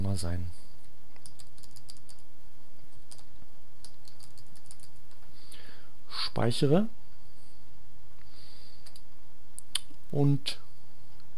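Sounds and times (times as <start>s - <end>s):
low steady hum: 0.0s - 11.3s
speech: 0.2s - 0.7s, 6.3s - 7.0s, 10.1s - 10.7s
computer keyboard typing into a text editor: 1.2s - 2.3s, 3.0s - 5.1s.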